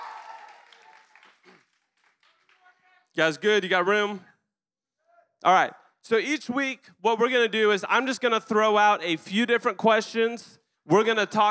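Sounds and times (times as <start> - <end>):
audience cheering and applauding for a student ministry intern: 0.0 - 2.8
speech: 3.2 - 4.3, 5.4 - 11.4.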